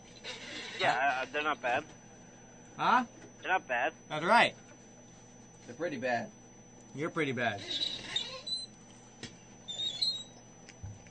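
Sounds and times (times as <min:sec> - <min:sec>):
chair squeaking: 0:00.2 - 0:00.9, 0:07.6 - 0:08.7, 0:09.7 - 0:10.4
speech: 0:00.8 - 0:02.0, 0:02.8 - 0:04.6, 0:05.6 - 0:07.8.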